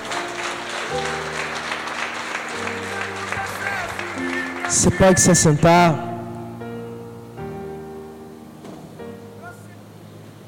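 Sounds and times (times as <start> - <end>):
applause: 0.0 - 5.6
speech: 4.7 - 6.1.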